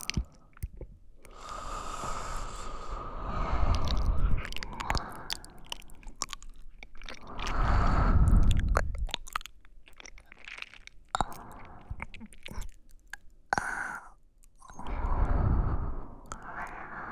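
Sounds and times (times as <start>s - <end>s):
wet squishing sounds: 0.0s - 15.0s
sleeping breath in both ears: 1.3s - 6.2s, 7.1s - 9.0s, 14.7s - 17.1s.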